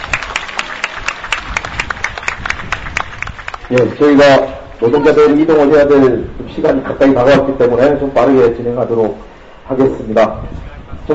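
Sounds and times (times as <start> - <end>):
applause: 0.0 - 4.2
speech: 3.7 - 11.1.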